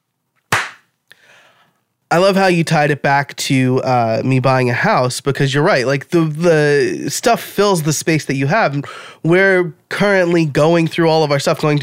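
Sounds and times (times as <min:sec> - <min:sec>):
single hand clap: 0:00.5 - 0:00.9
speech: 0:02.1 - 0:11.8.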